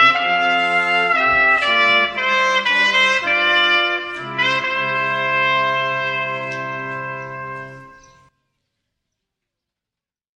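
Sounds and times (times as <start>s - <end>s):
brass band playing: 0.0s - 8.3s.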